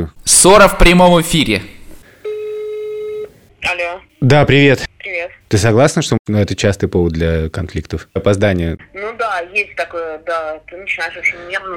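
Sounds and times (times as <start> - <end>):
speech: 0.0 - 1.8, 3.6 - 11.7
faint hiss: 0.0 - 11.7
ringback tone of an outgoing phone call: 2.1 - 3.5.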